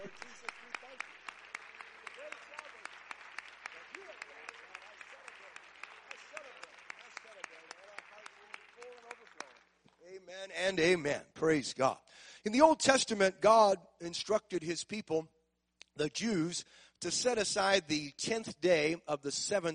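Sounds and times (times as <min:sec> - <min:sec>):
audience clapping hands in thanksgiving: 0:00.0 - 0:10.3
speech: 0:10.5 - 0:15.4, 0:16.0 - 0:19.7.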